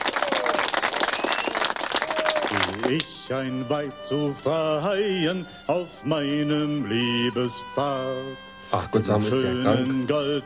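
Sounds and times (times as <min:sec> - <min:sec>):
applause: 0:00.0 - 0:03.1
speech: 0:02.8 - 0:10.4.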